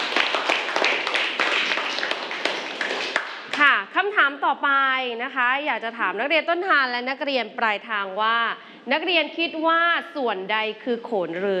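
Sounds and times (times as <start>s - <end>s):
students clapping for a classmate: 0.0s - 3.7s
speech: 4.3s - 11.5s.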